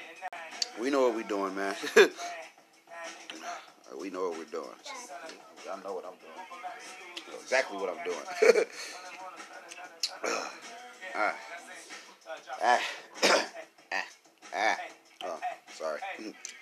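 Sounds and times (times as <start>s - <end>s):
speech: 0.2s - 2.4s, 3.5s - 9.1s, 10.2s - 11.5s, 12.5s - 13.0s
coughing and throat clearing to bring up phlegm: 10.1s - 10.6s, 12.6s - 14.7s.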